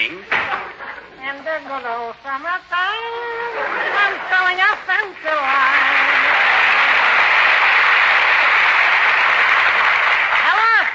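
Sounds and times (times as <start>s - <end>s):
speech: 1.5s - 6.4s
audience applause in an old radio comedy show: 3.6s - 10.9s.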